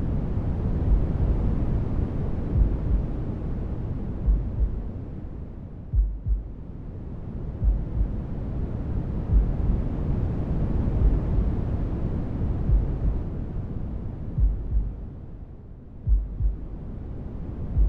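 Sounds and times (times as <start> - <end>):
noise: 0.0 - 17.8
heartbeat: 0.9 - 1.4, 2.5 - 3.0, 4.2 - 4.8, 5.9 - 6.6, 7.6 - 8.2, 9.3 - 9.7, 11.0 - 11.5, 12.7 - 13.2, 14.4 - 15.0, 16.0 - 16.7.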